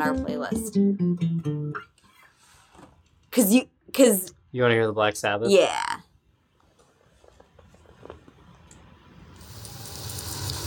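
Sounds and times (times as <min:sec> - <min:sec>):
speech: 0:00.0 - 0:01.9, 0:03.4 - 0:05.9
rain at the start of a song: 0:09.3 - 0:10.6.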